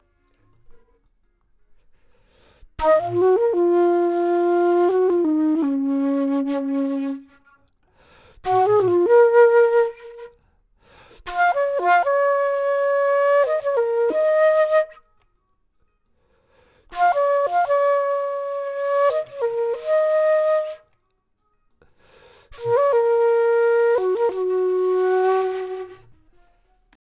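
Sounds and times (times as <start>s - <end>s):
flute: 2.7s - 7.7s, 8.4s - 10.5s, 11.1s - 15.4s, 16.8s - 21.6s, 22.3s - 27.0s.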